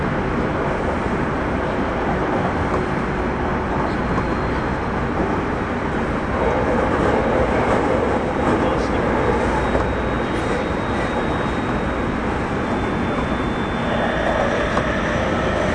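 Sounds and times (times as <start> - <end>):
Tobu 30000 series train running between Shibuya and Azamino: 0.0 - 15.7
faint whining tones of Tobu 30000 series train: 6.3 - 15.7.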